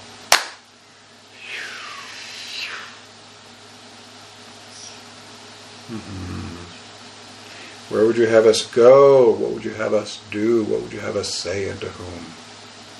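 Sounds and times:
group clapping hands once together: 0.3s - 0.6s
speech: 5.9s - 6.6s, 7.9s - 12.4s.

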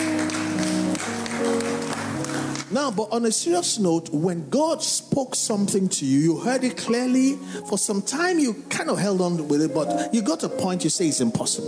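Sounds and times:
people clapping: 0.0s - 2.8s
speech: 2.7s - 11.6s.

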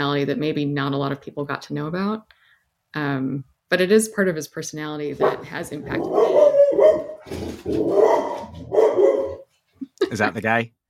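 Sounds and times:
speech: 0.0s - 9.0s, 10.1s - 10.8s
female dog barking: 5.2s - 9.4s.

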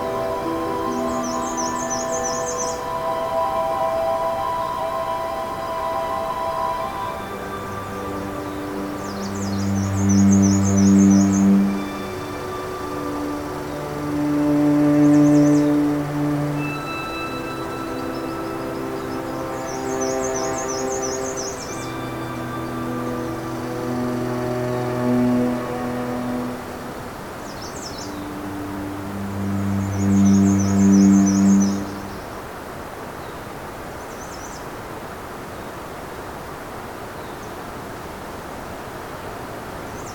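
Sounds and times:
deep sustained tones: 0.0s - 32.3s
birds trilling on a June morning: 7.7s - 32.3s.

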